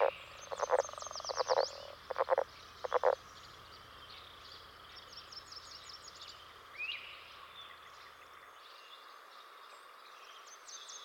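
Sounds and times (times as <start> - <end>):
leopard frog: 0.0 - 3.2.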